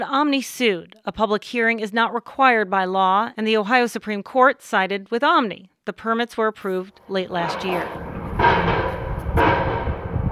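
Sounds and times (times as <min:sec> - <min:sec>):
speech: 0:00.0 - 0:08.8
heavy machinery drilling at a well construction site: 0:06.6 - 0:10.2.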